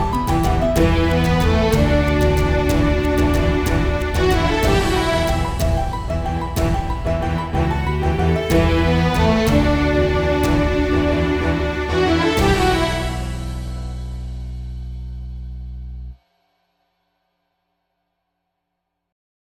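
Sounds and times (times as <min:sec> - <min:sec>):
Greek orchestral music: 0:00.0 - 0:15.2.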